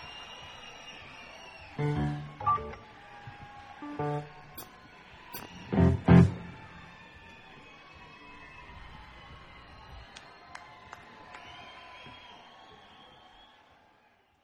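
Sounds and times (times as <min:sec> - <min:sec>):
jazz music: 0:01.8 - 0:02.9, 0:03.8 - 0:04.7, 0:05.3 - 0:06.9.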